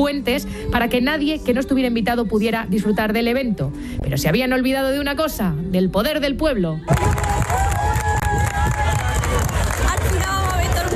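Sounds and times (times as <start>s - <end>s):
speech: 0.0s - 8.0s
crowd applauding: 6.9s - 10.9s.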